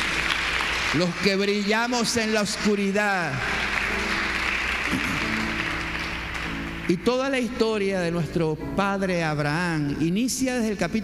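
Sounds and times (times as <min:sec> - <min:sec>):
audience applause: 0:00.0 - 0:07.1
speech: 0:00.9 - 0:04.1, 0:06.9 - 0:11.0.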